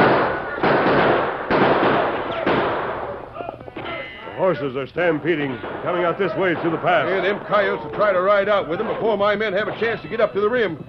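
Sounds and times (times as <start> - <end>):
gunfire in a shootout: 0.0 - 3.3, 5.4 - 10.0
speech: 4.5 - 10.8.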